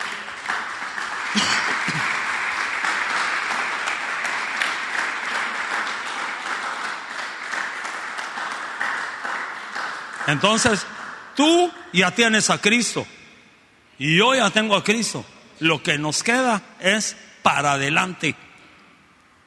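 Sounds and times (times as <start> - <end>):
applause: 0.0 - 11.4
speech: 10.3 - 13.2, 14.0 - 18.5.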